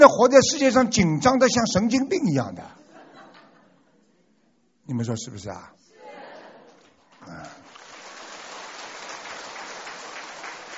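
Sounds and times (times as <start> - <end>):
speech: 0.0 - 2.8, 4.9 - 5.8
laughter: 2.8 - 4.2
audience applause: 6.8 - 10.7.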